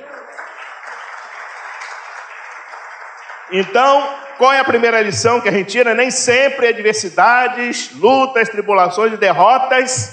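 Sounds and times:
audience applauding: 0.0s - 5.1s
speech: 3.5s - 10.1s.

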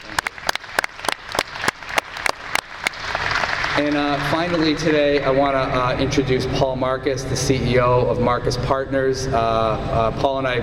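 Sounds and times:
audience applause: 0.0s - 5.1s
speech: 3.8s - 10.6s.

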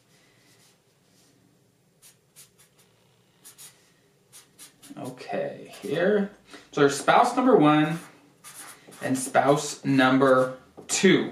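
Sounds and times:
pen writing on paper: 4.3s - 5.0s, 8.0s - 9.2s
speech: 5.1s - 8.1s, 9.0s - 11.2s.

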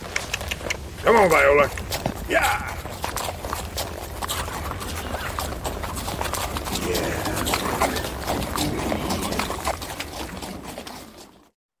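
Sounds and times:
mule hooves clip-clopping: 0.0s - 11.6s
speech: 1.0s - 2.8s.

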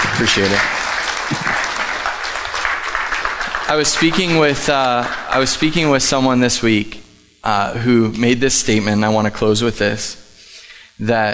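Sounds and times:
audience applause during a Sunday morning church service: 0.0s - 6.2s
speech: 0.2s - 1.7s, 3.7s - 10.2s, 11.0s - 11.3s.

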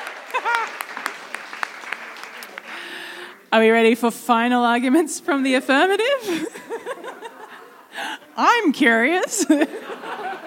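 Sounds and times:
laughter: 0.0s - 1.0s, 6.1s - 10.4s
applause: 0.0s - 3.2s
speech: 3.5s - 6.7s, 8.4s - 9.9s.

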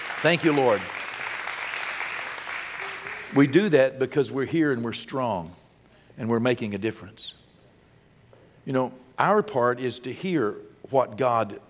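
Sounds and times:
audience hand clapping: 0.0s - 3.6s
speech: 0.2s - 1.0s, 3.3s - 5.6s, 6.2s - 7.4s, 8.7s - 11.6s.

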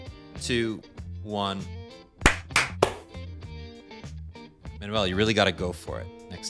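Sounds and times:
speech: 0.4s - 1.8s, 4.8s - 6.4s
hand clap: 2.3s - 3.1s.

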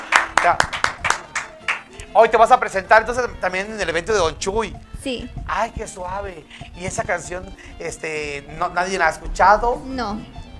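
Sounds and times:
people clapping: 0.0s - 2.2s
speech: 0.4s - 0.7s, 2.1s - 10.4s.

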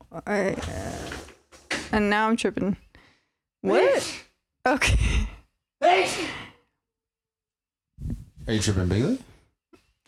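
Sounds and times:
speech: 0.2s - 1.2s, 1.9s - 2.8s, 3.6s - 5.3s, 8.5s - 9.3s
loud sneeze: 3.7s - 4.4s, 5.8s - 6.6s.

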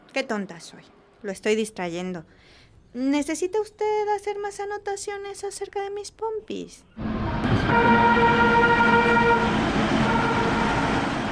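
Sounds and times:
speech: 0.2s - 9.2s
whistling horn-like tone of a metro train: 7.0s - 11.0s
metro train passing: 7.0s - 11.3s.

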